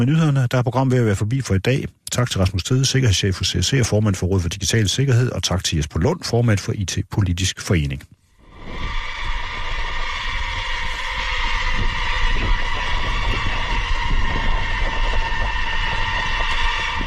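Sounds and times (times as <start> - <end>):
speech: 0.0 - 9.0
swarm of 103 autonomous military drones: 8.4 - 17.0.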